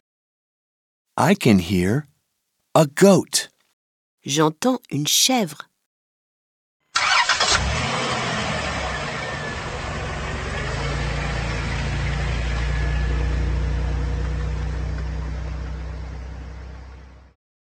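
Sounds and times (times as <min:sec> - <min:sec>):
speech: 0:01.2 - 0:02.1, 0:02.7 - 0:03.4, 0:04.2 - 0:05.7
minivan engine starting and idling: 0:06.9 - 0:17.3.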